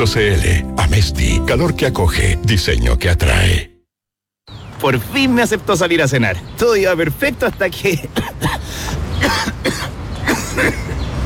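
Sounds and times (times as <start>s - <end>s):
speech: 0.0s - 3.7s, 4.8s - 9.8s, 10.6s - 10.8s
cough: 8.1s - 8.6s, 9.2s - 11.0s.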